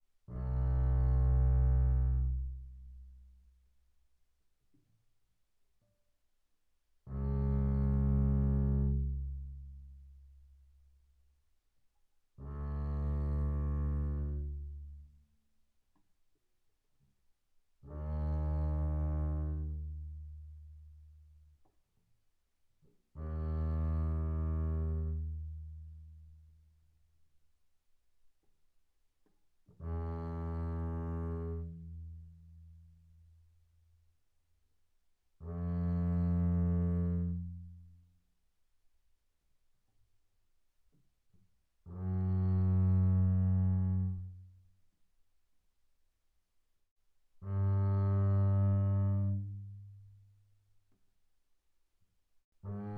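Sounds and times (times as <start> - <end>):
double bass bowed on the A string mezzo forte: 0.3 - 3.5, 7.1 - 10.7, 12.4 - 15.1, 17.8 - 21.7, 23.2 - 26.4, 29.7 - 33.2, 35.4 - 38.0, 41.8 - 44.6, 47.4 - 50.1, 52.7 - 52.9.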